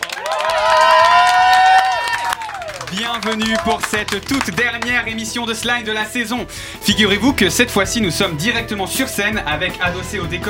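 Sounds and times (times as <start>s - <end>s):
live stage audience cheering and applauding at a season-finale show: 0.0s - 5.3s
speech: 3.2s - 10.4s.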